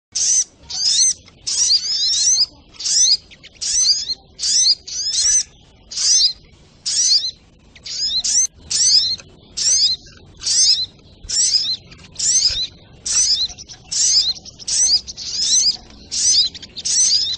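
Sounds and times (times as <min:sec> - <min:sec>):
spiderhunter singing: 0:00.1 - 0:17.3.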